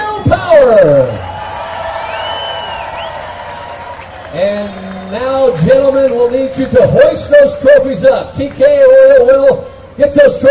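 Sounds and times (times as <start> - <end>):
speech: 0.6 - 1.3, 5.5 - 10.4
race fans applauding: 1.2 - 7.1.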